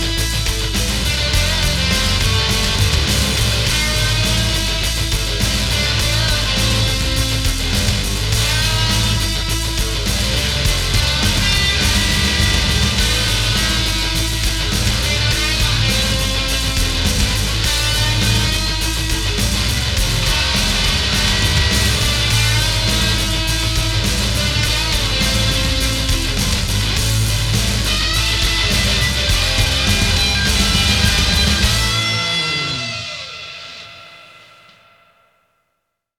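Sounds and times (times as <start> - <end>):
guitar jam: 0.0 - 34.8.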